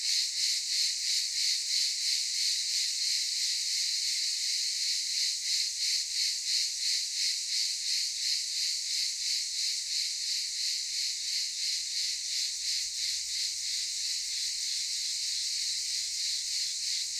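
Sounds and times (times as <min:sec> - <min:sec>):
cicadas chorus in daytime at a camp in Çıralı, Kemer, Antalya, Turkey: 0:00.0 - 0:17.1.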